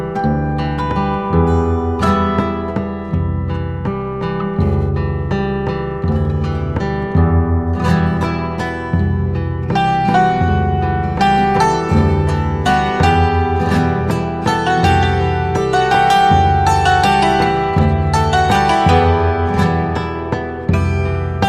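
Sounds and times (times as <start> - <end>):
slow maracatu percussion: 0.1 - 21.4.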